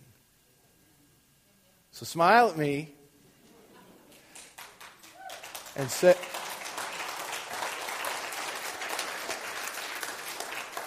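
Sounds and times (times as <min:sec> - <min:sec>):
speech: 0:02.0 - 0:03.0, 0:05.8 - 0:06.4
audience clapping: 0:04.1 - 0:10.8.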